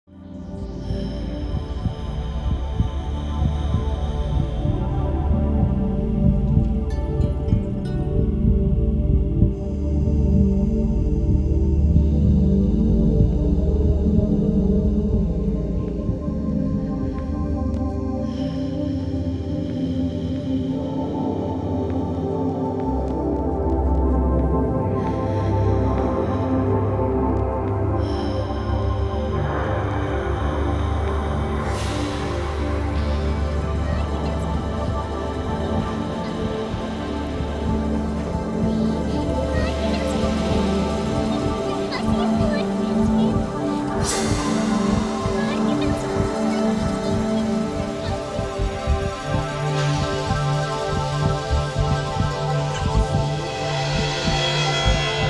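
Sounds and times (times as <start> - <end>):
haunting music: 0.0 - 55.2.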